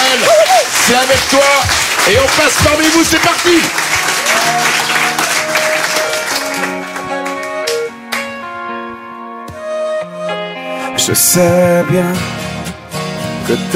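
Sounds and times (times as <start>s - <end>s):
crowd applauding: 0.0s - 8.5s
speech: 0.9s - 5.0s, 11.1s - 12.4s, 13.5s - 13.7s
music with sustained tones and chords: 3.7s - 13.7s.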